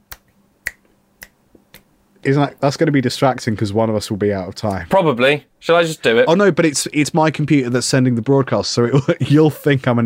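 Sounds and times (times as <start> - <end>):
finger snaps: 0.1 - 1.9
speech: 2.2 - 10.0.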